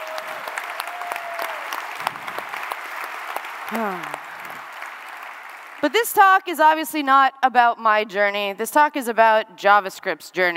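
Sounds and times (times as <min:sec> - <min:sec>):
audience round of applause: 0:00.0 - 0:05.9
speech: 0:03.7 - 0:04.2, 0:05.8 - 0:10.5
vocal tones: 0:03.7 - 0:04.2.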